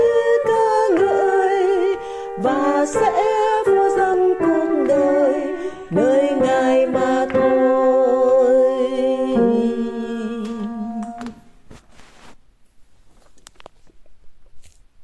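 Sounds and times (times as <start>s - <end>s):
tenor voice singing: 0.0s - 11.3s.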